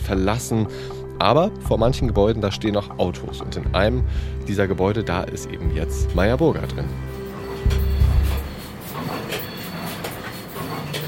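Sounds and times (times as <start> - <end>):
speech: 0.1 - 7.2
solar cell factory machinery: 5.5 - 11.0.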